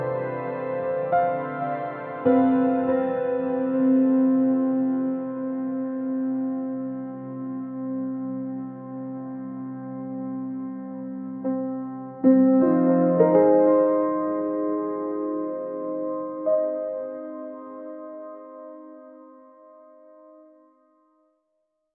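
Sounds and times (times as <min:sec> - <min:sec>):
magical enchanting ambient neoclassical music: 0:00.0 - 0:20.6.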